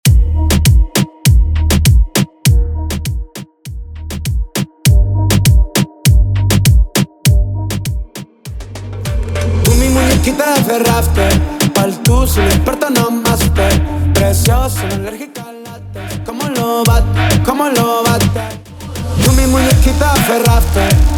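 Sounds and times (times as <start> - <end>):
intro and outro music: 0.0 - 21.1.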